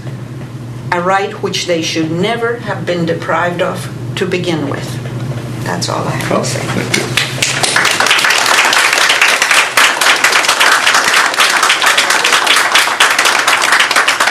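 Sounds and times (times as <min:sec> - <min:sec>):
speech: 0:00.9 - 0:05.0, 0:05.6 - 0:07.4
audience applause: 0:07.2 - 0:14.2.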